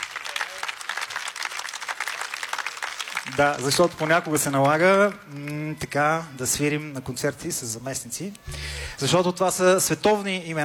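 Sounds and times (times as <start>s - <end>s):
audience applause: 0.0s - 5.7s
speech: 3.3s - 10.6s.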